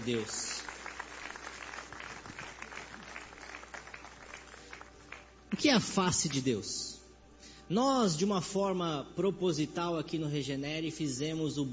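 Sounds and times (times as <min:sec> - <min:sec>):
speech: 0:00.0 - 0:00.6, 0:05.5 - 0:06.9, 0:07.7 - 0:11.7
audience clapping hands: 0:00.0 - 0:05.4.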